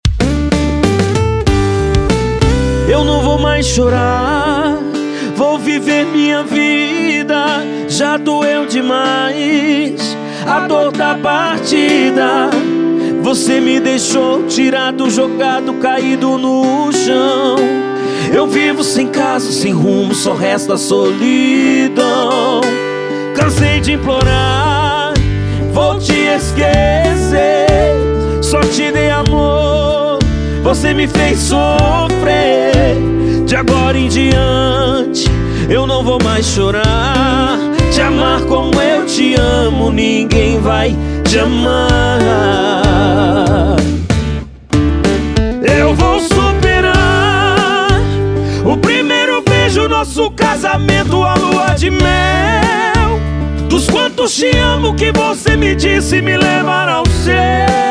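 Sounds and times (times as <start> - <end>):
sertanejo universitário sofrência music: 0.0 - 57.9.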